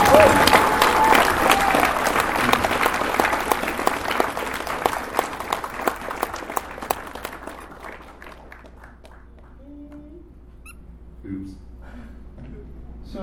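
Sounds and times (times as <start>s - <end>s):
audience applause: 0.0s - 9.6s.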